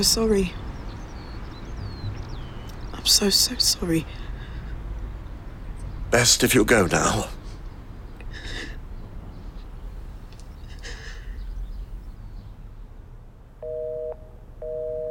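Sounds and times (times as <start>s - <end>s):
speech: 0.0s - 0.6s, 3.1s - 4.2s, 6.1s - 7.4s
low hiss: 0.0s - 15.0s
telephone disconnected-number tone beeps: 13.6s - 15.0s.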